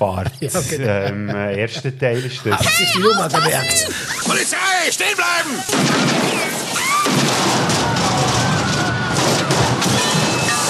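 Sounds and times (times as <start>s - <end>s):
laughter: 0.0s - 4.5s
speech: 0.0s - 8.0s
car exploding in film: 5.7s - 10.6s
gunshots in film: 5.7s - 10.6s.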